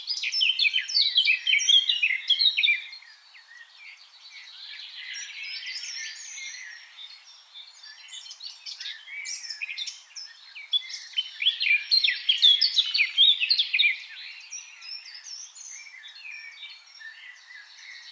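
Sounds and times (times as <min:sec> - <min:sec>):
Eurasian blackcap singing: 0:00.0 - 0:18.1.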